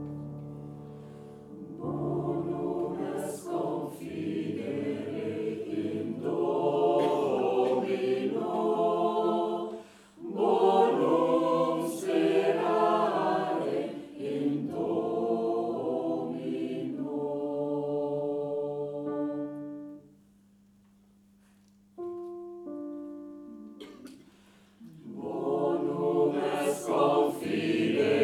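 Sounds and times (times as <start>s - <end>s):
Taize chant: 1.0s - 20.0s, 24.8s - 28.2s.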